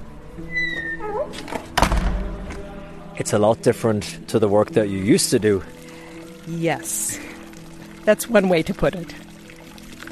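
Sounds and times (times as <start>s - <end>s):
heavy monastery door creaking open: 0.4s - 2.5s
heavy door thunk and rattle: 1.4s - 2.5s
speech: 3.2s - 5.8s, 6.4s - 7.4s, 8.0s - 9.2s.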